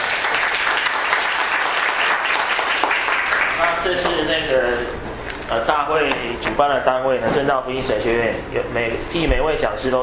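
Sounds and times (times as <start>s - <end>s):
audience applause: 0.0s - 3.8s
speech: 3.8s - 10.0s.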